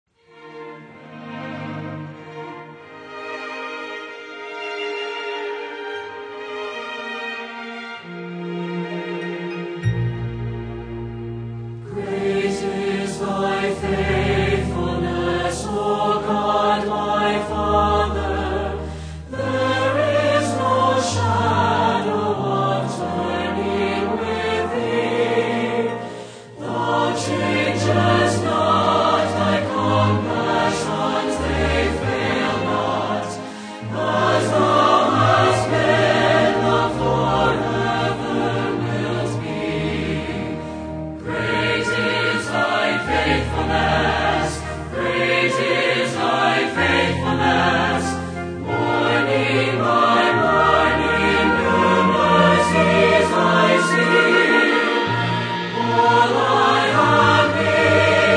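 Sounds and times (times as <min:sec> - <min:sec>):
orchestra playing: 0:00.2 - 0:58.3
singers: 0:11.9 - 0:58.3.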